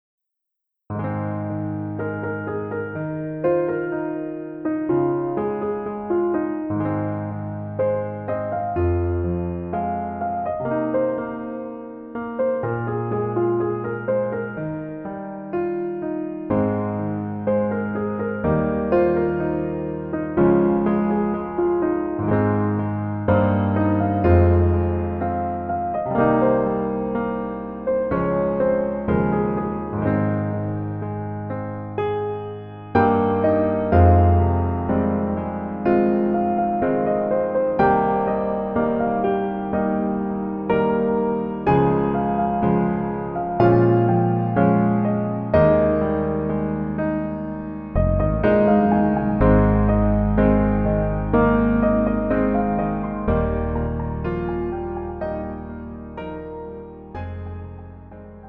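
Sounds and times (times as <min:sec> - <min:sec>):
piano: 0:00.7 - 0:58.4.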